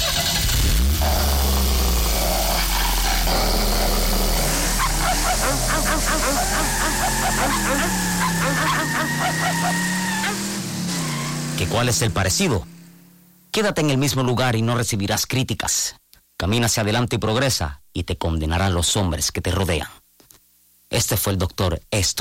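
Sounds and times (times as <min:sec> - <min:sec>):
car engine starting: 0:00.0 - 0:13.1
dogs howling: 0:02.5 - 0:10.5
dogs barking: 0:04.5 - 0:10.5
speech: 0:11.6 - 0:12.7, 0:13.6 - 0:20.0, 0:20.9 - 0:22.1.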